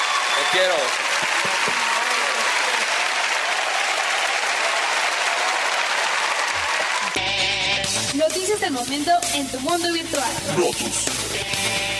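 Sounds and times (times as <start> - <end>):
audience applause: 0.0 - 7.2
speech: 0.4 - 1.8, 8.3 - 11.9.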